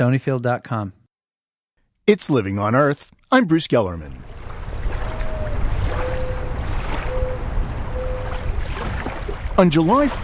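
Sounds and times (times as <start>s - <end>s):
speech: 0.0s - 1.0s, 2.1s - 4.4s, 9.6s - 10.2s
water washing at the shore of Walden Pond in Concord, Massachusetts: 4.1s - 10.2s
whistle-like tones: 5.1s - 8.6s.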